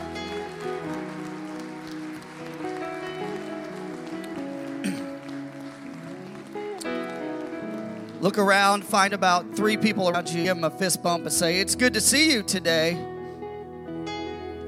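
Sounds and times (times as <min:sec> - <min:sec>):
crowd clapping: 0:00.0 - 0:10.7
speech: 0:08.2 - 0:13.1.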